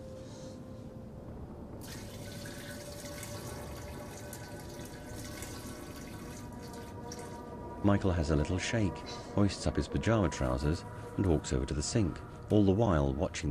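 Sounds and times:
urinating into a toilet: 1.8 - 7.5
speech: 7.8 - 13.5.

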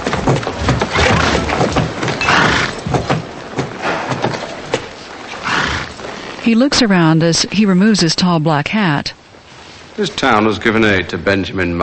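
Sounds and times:
horse hooves on a church floor as a rider enters: 0.0 - 8.0
speech: 6.5 - 9.2, 10.0 - 11.8.

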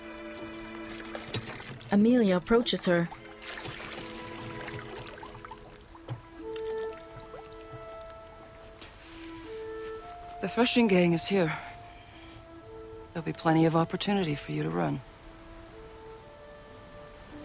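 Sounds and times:
water pumped by hand: 0.1 - 2.1, 3.0 - 8.9
speech: 1.9 - 3.2, 10.5 - 11.7, 13.2 - 15.1.

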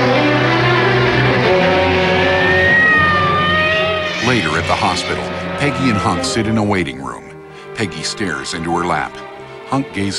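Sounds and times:
ambulance engine roaring as it pulls away and speeds off: 0.0 - 6.8
speech: 4.7 - 7.2, 7.8 - 10.1.

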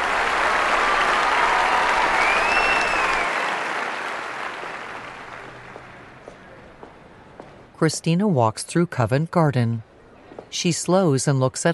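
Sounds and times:
applause: 0.0 - 6.2
speech: 7.8 - 9.9, 10.5 - 11.7.

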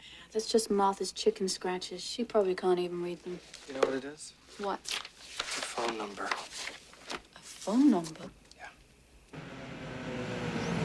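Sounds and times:
speech: 0.3 - 5.1, 5.8 - 6.8, 7.6 - 8.4
car pulling up in a sunny side street near a footbridge over water: 9.4 - 10.8.

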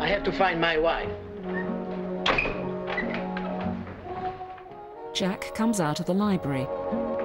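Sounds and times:
speech: 0.1 - 1.2, 5.1 - 7.1
office door being shut: 1.4 - 4.3.

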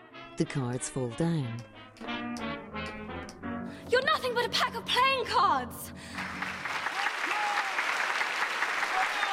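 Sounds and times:
speech: 0.4 - 2.1, 4.2 - 6.4
theatre audience rapturous applause: 6.1 - 9.3.

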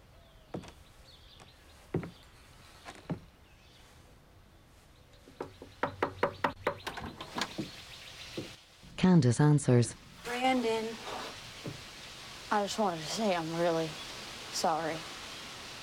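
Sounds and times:
knocking on a door: 5.4 - 7.8
speech: 9.0 - 10.0, 12.6 - 15.2.

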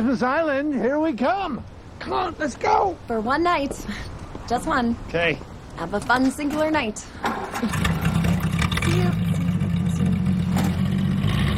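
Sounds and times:
speech: 0.0 - 7.8
car driving off, engine rumbling: 6.6 - 11.5.

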